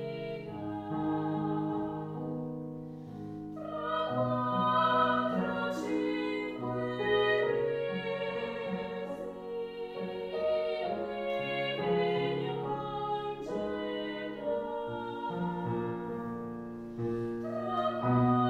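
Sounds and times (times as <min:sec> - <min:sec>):
female choir singing: 0:00.0 - 0:02.4, 0:03.5 - 0:16.3, 0:17.3 - 0:18.4.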